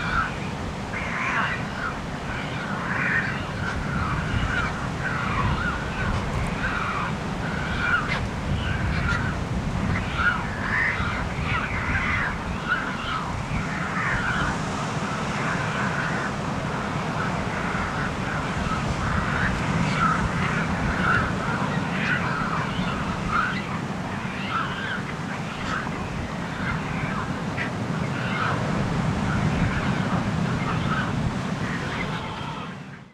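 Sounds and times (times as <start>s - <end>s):
pelicans rasping calls: 0.0s - 32.8s.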